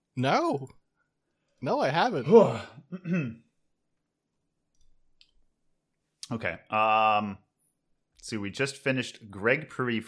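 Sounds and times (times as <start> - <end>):
speech: 0.2 - 0.8, 1.6 - 3.4, 6.3 - 7.4, 8.2 - 10.0
throat clearing from caviar stuck in the throat: 2.4 - 3.5
soft clicks: 4.6 - 5.5.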